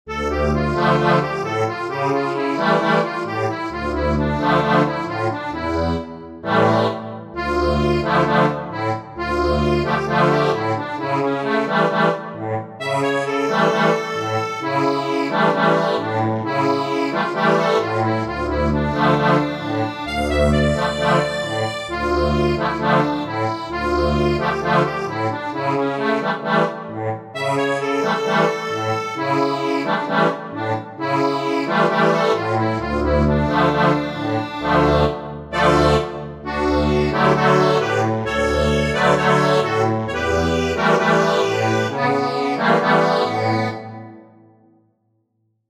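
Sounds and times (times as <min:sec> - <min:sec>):
accordion: 0:00.0 - 0:44.6.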